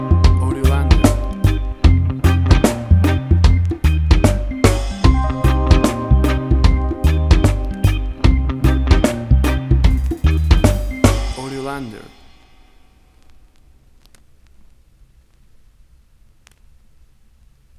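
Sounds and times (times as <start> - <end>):
groove music: 0.0 - 13.2.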